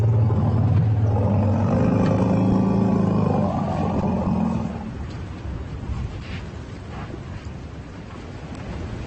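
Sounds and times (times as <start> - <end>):
elephant greeting rumbles between two herds: 0.0 - 5.0.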